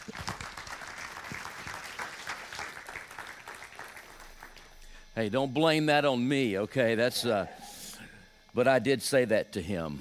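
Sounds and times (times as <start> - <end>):
Coastal Community Church congregation applauding: 0.0 - 4.8
speech: 5.2 - 7.6, 8.6 - 9.9.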